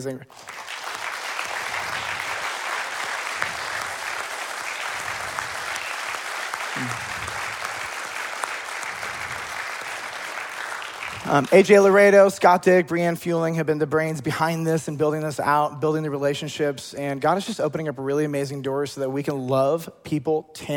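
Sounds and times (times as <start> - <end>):
speech: 0.0 - 0.5, 11.3 - 20.7
audience applause: 0.3 - 11.7.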